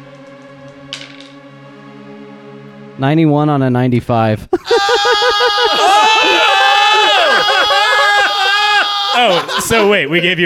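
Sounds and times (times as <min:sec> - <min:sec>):
speech: 0:03.0 - 0:04.8, 0:09.2 - 0:10.4
laughter: 0:04.5 - 0:10.4
person screaming: 0:04.6 - 0:09.8.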